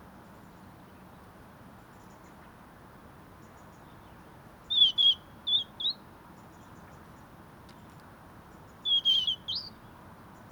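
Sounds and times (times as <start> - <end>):
European robin singing: 8.8 - 9.8.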